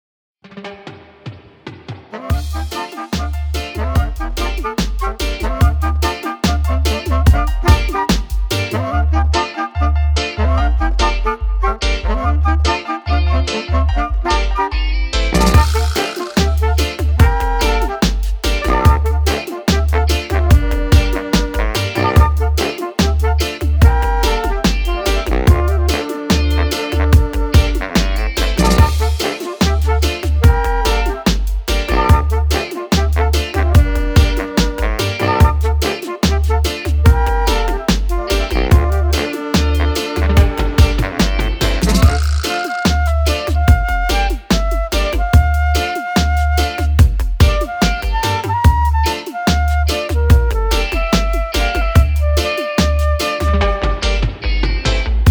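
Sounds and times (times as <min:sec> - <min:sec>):
saxophone: 0:02.1 - 0:54.3
flute: 0:02.1 - 0:54.4.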